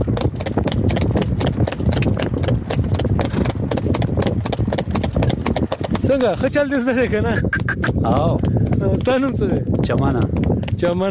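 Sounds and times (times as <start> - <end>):
hooves of a horse pulling a tonga cart clip-clopping along a road: 0.0 - 11.0
speech: 6.2 - 11.0.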